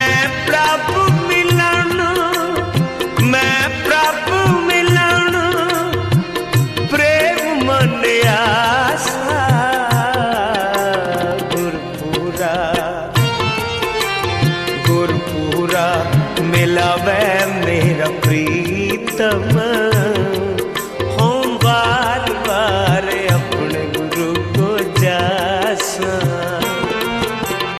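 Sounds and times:
Punjabi shabad ringtone: 0.0 - 27.7.

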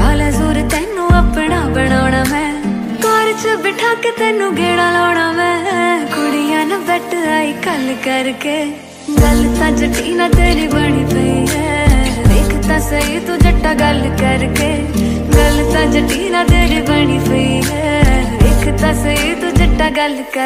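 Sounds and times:
Hindi love song ringtone: 0.1 - 20.3.

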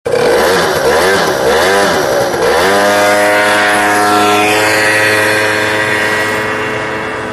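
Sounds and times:
vehicle starting: 0.1 - 7.3.

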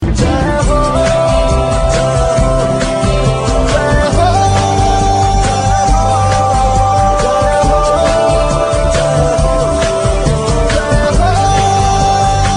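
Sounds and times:
chorus singing: 0.0 - 12.5.

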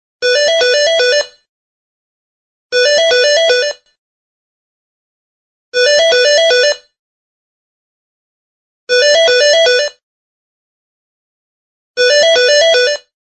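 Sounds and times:
office phone ringtone: 0.2 - 1.5, 2.8 - 3.8, 5.8 - 7.0, 8.9 - 10.0, 12.0 - 13.1.

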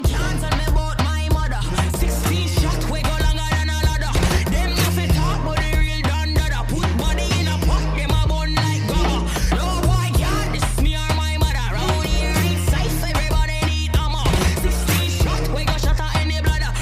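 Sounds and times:
background music ringtone: 0.0 - 16.8.

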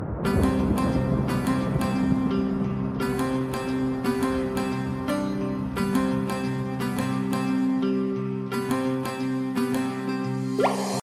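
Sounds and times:
Bollywood guitar music ringtone: 0.2 - 11.0.

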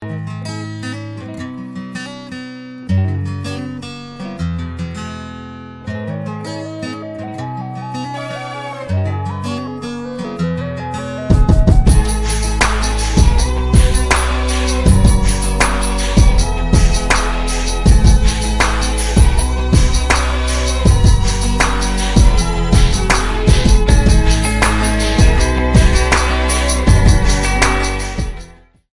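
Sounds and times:
ringtone: 7.2 - 28.4.

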